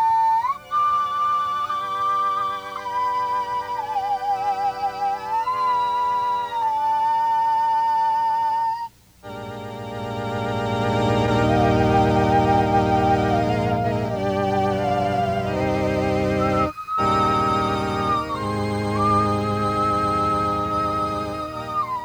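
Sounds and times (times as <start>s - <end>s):
touch sensitive electronic organ: 0.0s - 8.0s, 9.2s - 22.0s
mouth cavity oscillator: 9.2s - 22.0s.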